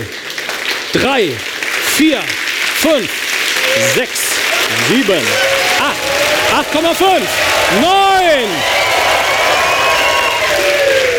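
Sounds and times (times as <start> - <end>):
stage show audience clapping: 0.0 - 11.1
speech: 0.9 - 8.8
stage show audience whooping: 3.6 - 11.1.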